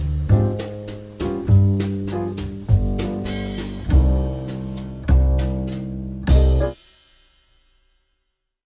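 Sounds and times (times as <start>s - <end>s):
Dm7b5 G7 Cm7 bossa nova chord progression: 0.0s - 6.8s.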